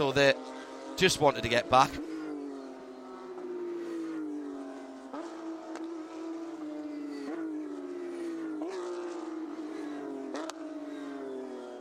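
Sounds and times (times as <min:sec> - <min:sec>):
speech: 0:00.0 - 0:02.1
Toyota race car engine slowing into the pits on Michelin tyres: 0:00.0 - 0:11.8.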